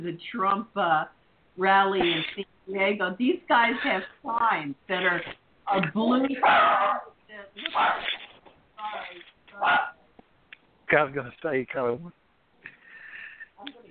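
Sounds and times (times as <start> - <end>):
speech: 0.0 - 8.2, 8.9 - 10.0, 10.9 - 12.2
dog barking: 6.4 - 8.1, 9.6 - 10.0.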